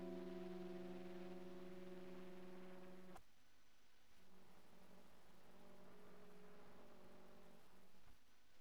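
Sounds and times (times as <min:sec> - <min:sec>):
sleep jazz: 0:00.0 - 0:03.2.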